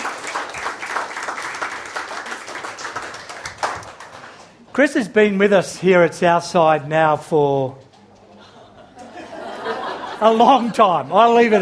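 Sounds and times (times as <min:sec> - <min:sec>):
audience clapping: 0:00.0 - 0:04.7
speech: 0:04.8 - 0:07.8, 0:10.2 - 0:11.6
laughter: 0:08.3 - 0:11.6.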